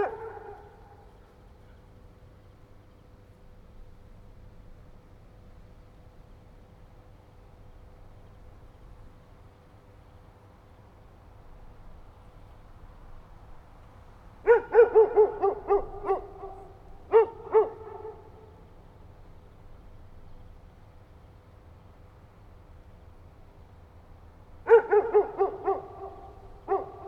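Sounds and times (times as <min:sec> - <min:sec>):
dog barking: 0:00.0 - 0:01.1, 0:14.4 - 0:18.5, 0:24.7 - 0:27.0.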